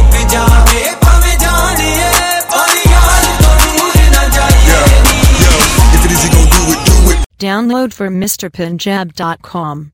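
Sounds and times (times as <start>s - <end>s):
Punjabi Bhangra music tones: 0.0s - 7.7s.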